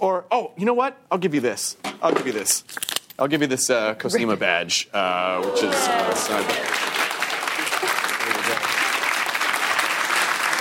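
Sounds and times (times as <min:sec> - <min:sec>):
speech: 0:00.0 - 0:06.9
crowd noise: 0:05.2 - 0:10.5
audience applause: 0:05.4 - 0:10.5.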